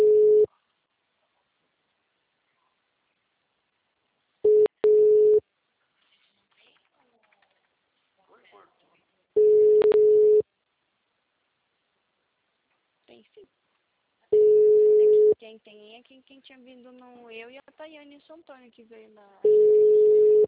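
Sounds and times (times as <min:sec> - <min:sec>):
telephone line tone: 0:00.0 - 0:00.5, 0:04.5 - 0:05.4, 0:09.4 - 0:10.4, 0:14.4 - 0:15.4, 0:19.4 - 0:20.4
speech: 0:13.2 - 0:13.8, 0:15.4 - 0:19.6.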